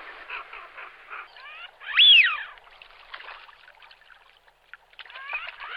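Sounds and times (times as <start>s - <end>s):
Eurasian wigeon calls: 1.9s - 2.4s.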